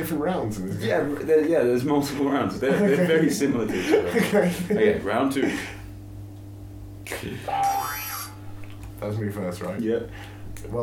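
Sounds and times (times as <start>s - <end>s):
speech: 0.1s - 5.8s, 7.1s - 8.0s, 9.0s - 10.8s
laughter: 2.6s - 5.8s
electronic game show buzzer: 7.3s - 8.5s.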